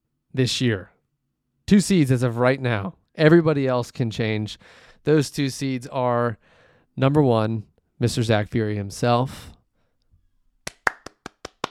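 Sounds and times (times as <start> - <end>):
speech: 0.3 - 0.9, 1.7 - 9.6
short clapping: 10.7 - 11.7.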